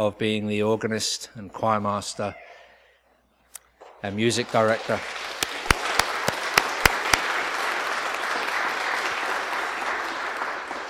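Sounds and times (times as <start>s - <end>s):
speech: 0.0s - 2.6s, 4.0s - 5.4s
audience applause: 4.5s - 10.8s.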